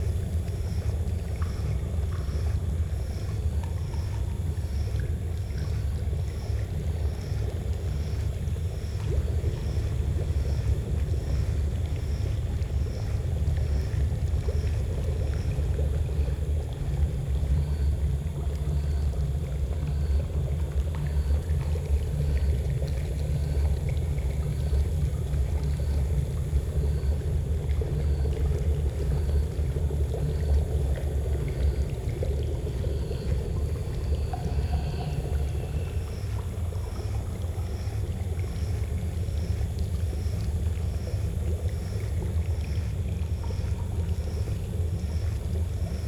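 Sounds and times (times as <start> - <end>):
colour lab ambience: 0.0 - 46.0.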